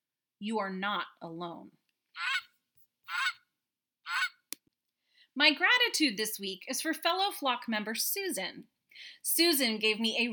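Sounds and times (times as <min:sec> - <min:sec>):
speech: 0:00.4 - 0:02.3, 0:05.4 - 0:10.3
goose honking: 0:02.2 - 0:02.5, 0:03.1 - 0:03.4, 0:04.1 - 0:04.4.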